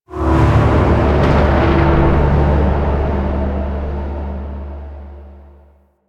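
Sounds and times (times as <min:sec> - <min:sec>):
mood change musical stinger: 0:00.1 - 0:05.7.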